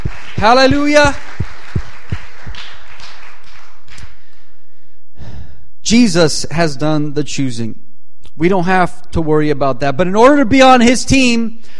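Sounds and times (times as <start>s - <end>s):
audience clapping: 0.0s - 4.4s
speech: 0.4s - 1.3s, 5.9s - 7.8s, 8.4s - 11.7s.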